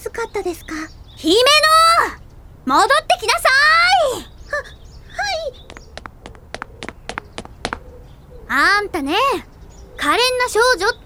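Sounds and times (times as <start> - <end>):
speech: 0.3 - 4.2, 8.5 - 11.0
footsteps of a girl running at full speed during a film take: 4.5 - 8.6.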